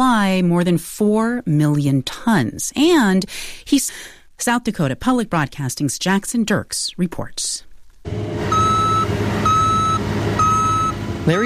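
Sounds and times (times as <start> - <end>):
speech: 0.0 - 8.6
cargo truck engine rumbling while being loaded with soybeans: 8.1 - 11.4
backup alarm beeps: 8.5 - 11.4.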